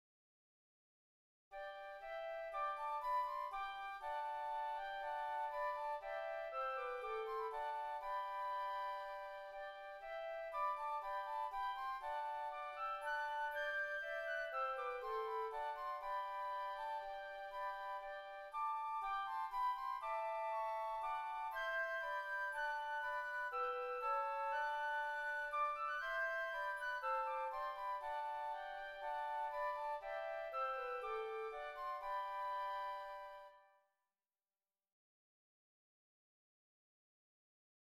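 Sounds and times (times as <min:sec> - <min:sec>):
flutes playing a hymn: 0:01.6 - 0:33.8.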